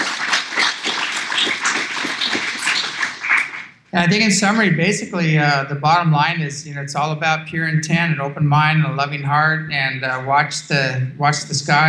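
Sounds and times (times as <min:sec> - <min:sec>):
audience clapping for a show guest: 0:00.0 - 0:03.8
speech: 0:03.9 - 0:11.8.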